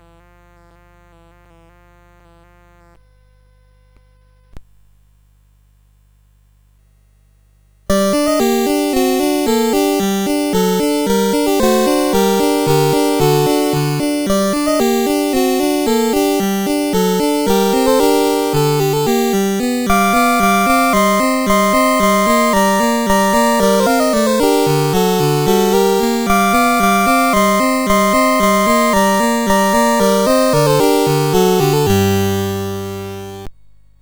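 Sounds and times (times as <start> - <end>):
CSG 8580 sound chip: 7.9 - 33.5.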